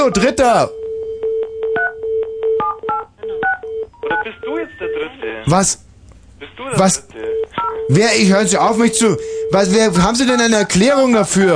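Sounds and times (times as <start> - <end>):
speech: 0.0 - 0.8, 4.2 - 5.8, 6.4 - 11.5
telephone keypad dialing tones: 0.8 - 4.2.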